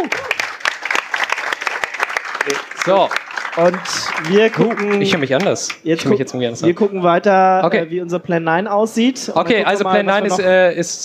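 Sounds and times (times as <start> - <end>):
audience applause: 0.0 - 5.8
speech: 2.4 - 11.0.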